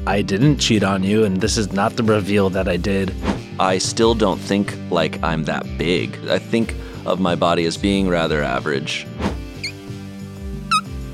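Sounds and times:
speech: 0.1s - 9.3s
squeak noises made with the mouth: 9.6s - 9.8s, 10.6s - 11.0s.

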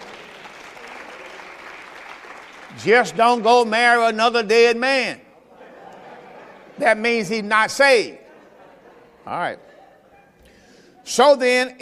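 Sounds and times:
audience clapping hands: 0.0s - 3.7s
speech: 2.7s - 5.2s, 6.8s - 8.2s, 9.2s - 9.7s, 11.1s - 11.8s
laughter: 5.3s - 11.2s.

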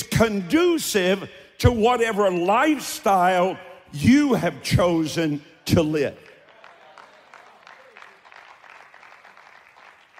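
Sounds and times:
speech: 0.2s - 6.3s
audience clapping: 6.1s - 10.1s.

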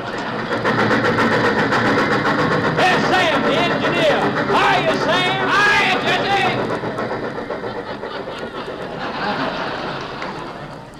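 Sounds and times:
laughter: 0.0s - 0.9s, 2.9s - 10.9s
train passing by: 0.0s - 10.9s.

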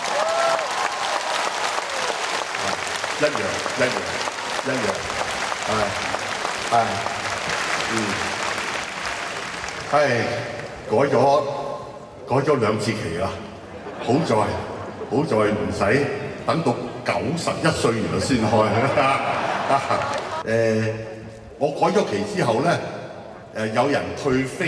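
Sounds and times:
crowd cheering: 0.0s - 10.8s, 18.8s - 20.4s
audience applauding: 0.0s - 10.9s, 19.6s - 20.4s
speech: 3.2s - 7.2s, 7.9s - 8.4s, 9.9s - 11.6s, 12.3s - 13.5s, 14.1s - 23.0s, 23.6s - 24.6s
laughter: 13.6s - 15.8s, 17.9s - 20.5s.

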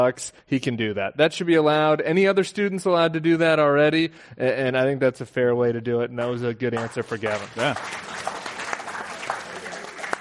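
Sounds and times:
speech: 0.0s - 8.3s
crowd applauding: 6.8s - 10.1s.

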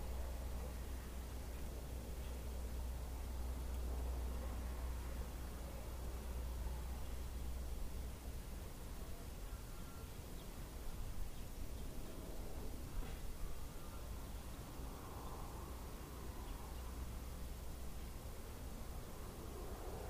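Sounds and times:
wind in a small Mid West town: 0.0s - 20.0s.

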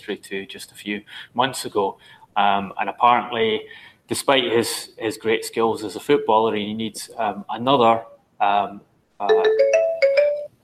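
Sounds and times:
speech: 0.0s - 9.8s
phone ringtone melody of bright electronic tones: 9.3s - 10.6s.

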